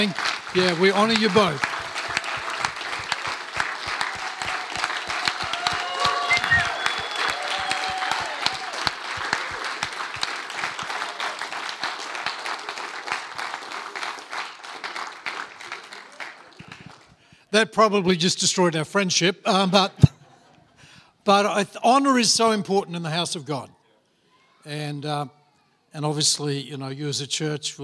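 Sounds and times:
speech: 0:00.0 - 0:01.7, 0:17.6 - 0:20.1, 0:21.3 - 0:23.8, 0:24.6 - 0:27.8
audience applause: 0:00.0 - 0:17.2.

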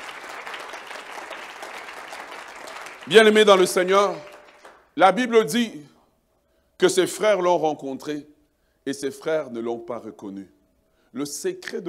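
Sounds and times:
church congregation applauding during a sermon: 0:00.0 - 0:05.0
speech: 0:03.1 - 0:04.3, 0:05.0 - 0:05.9, 0:06.8 - 0:11.8.

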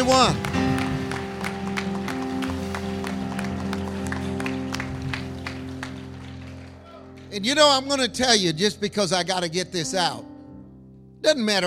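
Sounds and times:
audience clapping hands: 0:00.0 - 0:07.5
speech: 0:00.1 - 0:00.7, 0:07.4 - 0:10.3, 0:11.2 - 0:11.6.

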